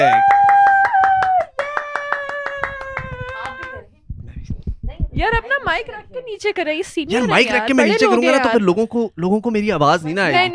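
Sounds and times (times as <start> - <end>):
crowd clapping in unison for a guest: 0.0 - 3.8
speech: 5.2 - 10.5.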